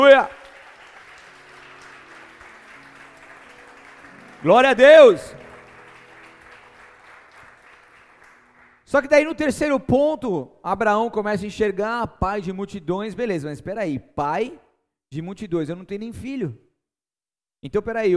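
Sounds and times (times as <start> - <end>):
speech: 0.0 - 0.4, 4.4 - 5.4, 8.9 - 16.6, 17.6 - 18.1
audience applauding loudly: 0.0 - 8.9.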